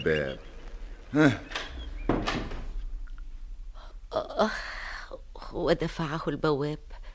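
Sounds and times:
speech: 0.0 - 0.5, 1.1 - 2.4, 4.4 - 4.6, 5.6 - 7.0
door being shut: 1.2 - 2.9.

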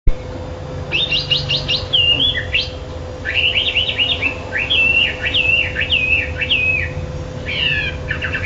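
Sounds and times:
bird singing clear whistled phrases: 0.9 - 8.4.

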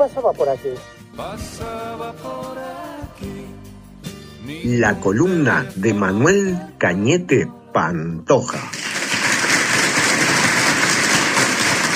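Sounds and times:
speech: 0.0 - 3.7, 4.4 - 8.8
crowd applause: 8.7 - 11.9.

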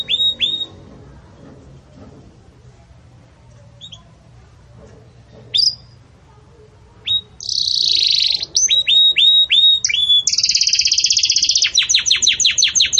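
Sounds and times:
canary song: 0.0 - 0.8, 3.8 - 4.2, 5.5 - 6.0, 7.0 - 12.9.

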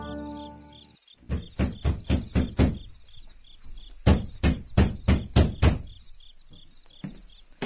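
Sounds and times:
knocking on a door: 1.3 - 2.9, 4.0 - 6.0.

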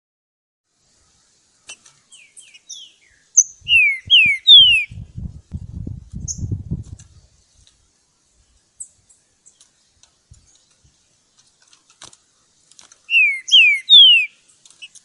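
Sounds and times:
Green-winged Saltator whistled song recorded in the bush: 2.2 - 5.0, 13.1 - 14.4.

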